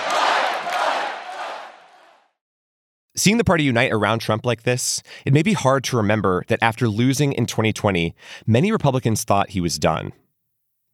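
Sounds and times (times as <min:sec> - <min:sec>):
convention crowd chanting a rallying cry during Donald Trump's speech: 0:00.0 - 0:02.4
speech: 0:03.2 - 0:10.2.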